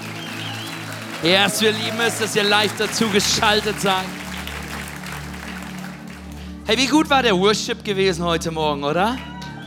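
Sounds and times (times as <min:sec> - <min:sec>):
audience applause: 0:00.0 - 0:06.7
speech: 0:01.2 - 0:04.2, 0:06.7 - 0:09.3.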